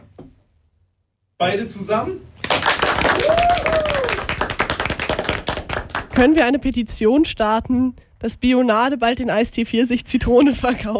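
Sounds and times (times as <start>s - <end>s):
speech: 1.4s - 4.2s, 6.2s - 10.9s
applause: 2.4s - 6.4s.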